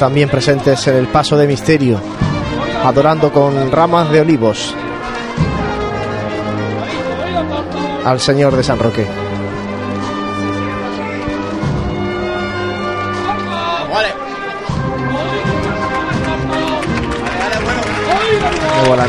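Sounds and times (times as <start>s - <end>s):
speech: 0.0s - 5.5s, 8.0s - 9.2s
brass band music: 0.0s - 19.0s
street crowd applauding a passing procession: 15.3s - 19.0s.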